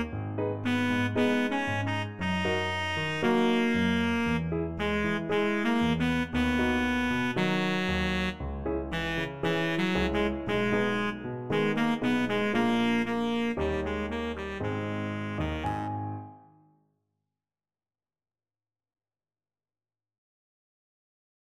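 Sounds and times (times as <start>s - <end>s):
baritone saxophone: 0.0s - 16.4s.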